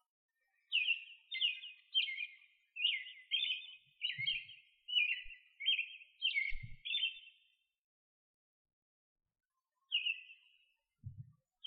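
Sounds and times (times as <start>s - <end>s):
bird chirping: 0.4s - 7.5s, 9.9s - 10.6s.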